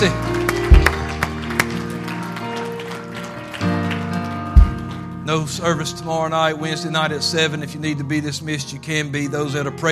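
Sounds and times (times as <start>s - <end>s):
speech: 0.0s - 0.2s, 5.3s - 9.9s
audience hand clapping: 0.0s - 5.2s.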